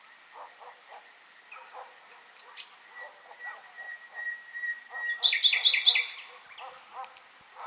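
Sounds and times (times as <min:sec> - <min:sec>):
common nightingale singing: 0:02.5 - 0:07.0.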